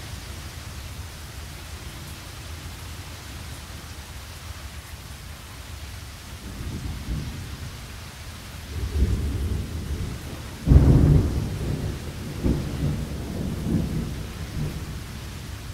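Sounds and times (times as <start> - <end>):
thunderstorm: 6.4 - 8.0, 8.6 - 15.7.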